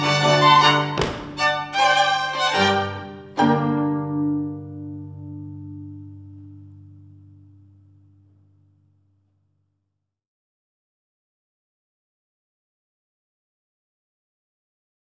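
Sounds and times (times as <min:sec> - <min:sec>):
string quartet: 0:00.0 - 0:06.3.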